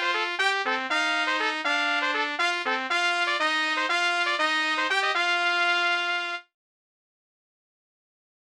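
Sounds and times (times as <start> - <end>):
three trumpets playing a duet: 0.0 - 6.5.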